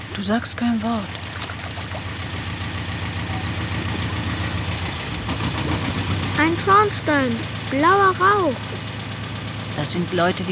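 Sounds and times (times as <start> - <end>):
engine running: 0.0 - 10.5
speech: 0.2 - 1.3, 6.4 - 8.8, 9.8 - 10.5.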